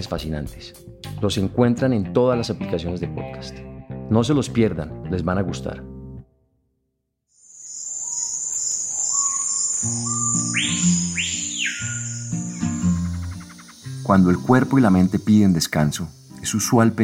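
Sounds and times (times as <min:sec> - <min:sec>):
speech: 0:00.0 - 0:05.9, 0:14.1 - 0:17.0
crickets chirping: 0:07.4 - 0:17.0
birds singing: 0:07.6 - 0:17.0.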